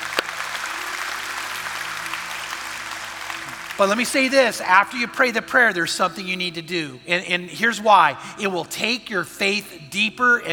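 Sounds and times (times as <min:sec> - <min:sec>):
crowd applauding: 0:00.0 - 0:05.3
speech: 0:03.8 - 0:10.5.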